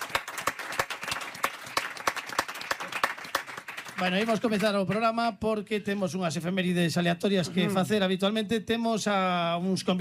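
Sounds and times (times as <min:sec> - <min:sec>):
audience applause: 0:00.0 - 0:05.0
speech: 0:04.0 - 0:09.9.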